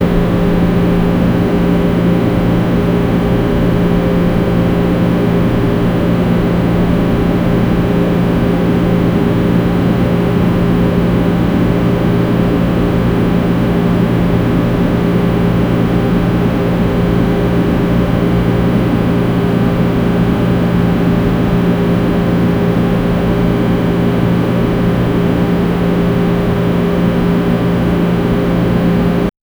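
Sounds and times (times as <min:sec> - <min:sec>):
air conditioner running: 0:00.0 - 0:29.3.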